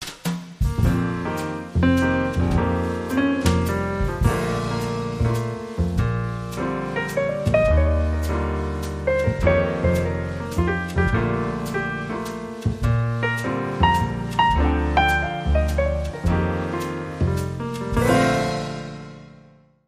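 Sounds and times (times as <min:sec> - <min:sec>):
nursery rhyme melody: 0:00.8 - 0:19.5.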